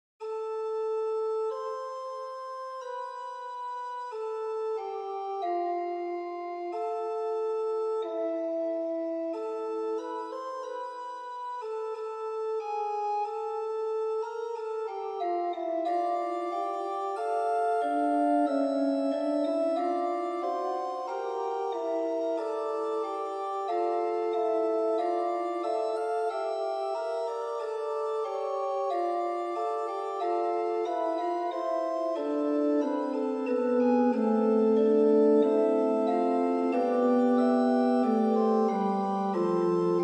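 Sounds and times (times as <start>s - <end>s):
micro fugue on organ: 0.2s - 40.0s.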